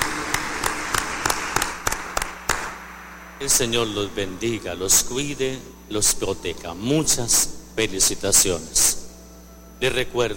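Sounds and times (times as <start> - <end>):
applause: 0.0 - 2.8
speech: 3.4 - 9.0, 9.8 - 10.3.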